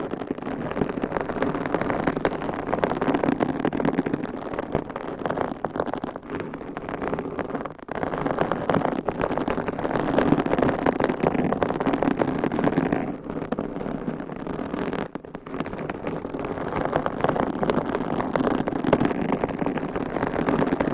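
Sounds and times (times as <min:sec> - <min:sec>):
nails scratching and rubbing a textured surface: 0:00.0 - 0:20.9.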